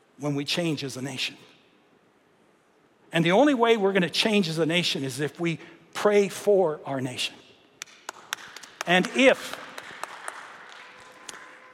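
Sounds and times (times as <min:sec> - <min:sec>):
speech: 0:00.2 - 0:01.5, 0:03.1 - 0:07.4, 0:08.8 - 0:09.6
audience clapping: 0:07.8 - 0:11.7.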